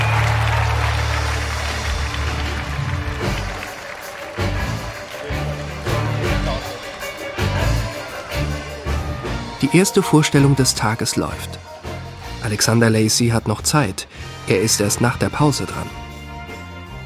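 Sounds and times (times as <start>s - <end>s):
circus audience applause: 0.0s - 8.8s
speech: 9.6s - 11.7s, 12.5s - 16.0s.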